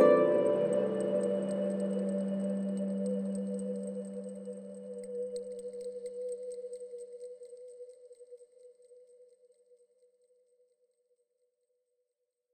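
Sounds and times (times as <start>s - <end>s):
harp: 0.0s - 5.3s.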